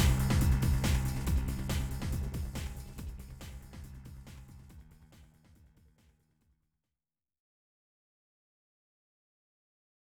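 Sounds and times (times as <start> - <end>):
suspense music: 0.0 - 5.2.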